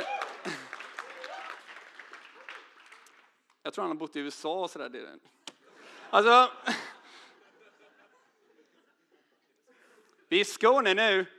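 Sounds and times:
voices whooping and cheering: 0.0 - 3.2
audience applause: 0.0 - 3.3
speech: 3.7 - 5.4, 6.1 - 6.8, 10.3 - 11.3
laughter: 5.6 - 10.0.

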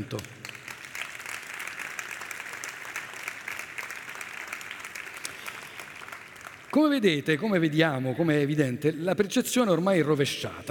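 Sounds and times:
speech: 0.0 - 0.4, 6.8 - 10.6
audience applause: 0.0 - 7.2.

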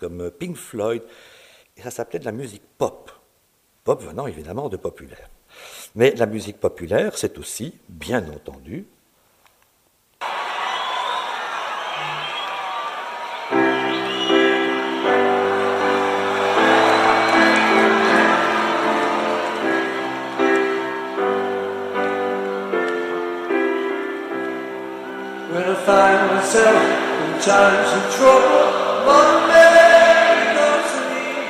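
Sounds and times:
speech: 0.0 - 3.2, 3.9 - 9.0, 25.9 - 29.7
concert audience singing along to a song: 13.0 - 31.4.

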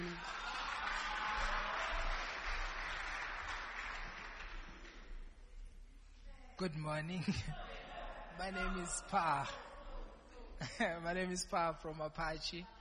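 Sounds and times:
audience applause: 0.0 - 5.1
speech: 6.6 - 7.7, 8.4 - 9.7, 10.6 - 12.7
laughter: 7.2 - 11.0.

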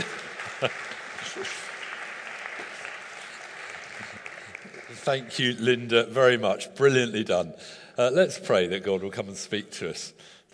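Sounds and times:
speech: 0.0 - 1.6, 5.0 - 10.4
audience applause: 0.0 - 5.9.

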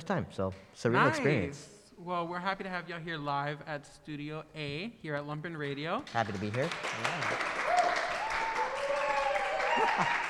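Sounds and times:
speech: 0.0 - 7.5, 9.9 - 10.2
small audience applauding: 6.1 - 10.2.

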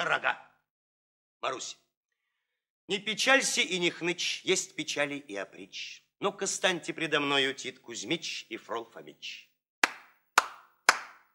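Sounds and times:
speech: 0.0 - 0.5, 1.4 - 1.8, 2.9 - 9.5
hand claps: 9.8 - 11.3.

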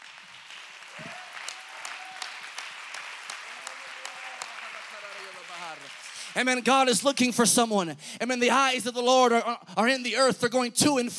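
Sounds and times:
audience clapping hands: 0.0 - 7.3
speech: 6.4 - 11.1.

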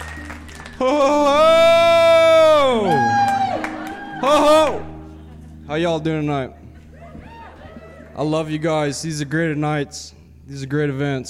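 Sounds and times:
enthusiastic audience cheer: 0.7 - 5.1, 6.9 - 8.2
speech: 0.8 - 1.5, 5.7 - 6.7, 8.2 - 11.2.

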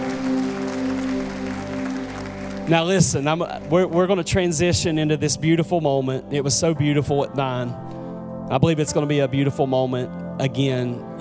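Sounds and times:
audience hand clapping: 0.0 - 4.2
speech: 2.7 - 11.2.

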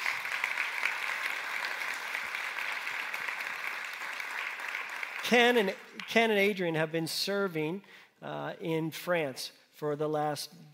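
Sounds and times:
audience clapping: 0.0 - 6.6
speech: 5.3 - 10.7.

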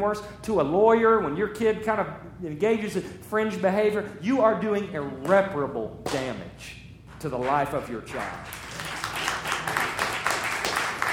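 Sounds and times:
speech: 0.0 - 8.6
audience clapping: 7.2 - 11.1.

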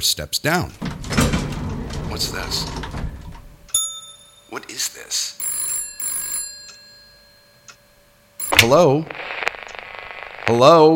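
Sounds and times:
speech: 0.0 - 1.4, 2.1 - 3.0, 4.5 - 5.4, 8.6 - 9.4, 10.5 - 10.9
telephone bell ringing: 5.4 - 7.7, 8.4 - 8.8.

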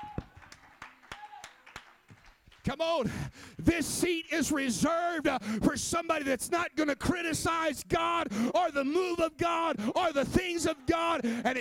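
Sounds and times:
people clapping hands: 0.0 - 2.8
speech: 2.7 - 11.5.

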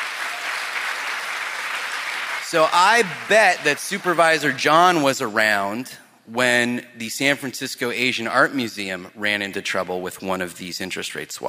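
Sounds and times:
audience applause: 0.0 - 4.6
speech: 2.5 - 11.4.

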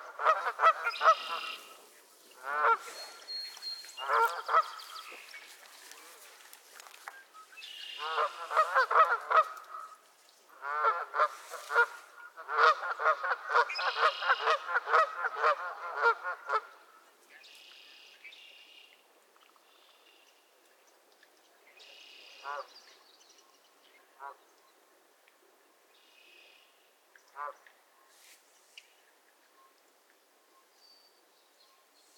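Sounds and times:
geese honking: 0.0 - 6.2, 7.8 - 10.0, 10.6 - 16.8.

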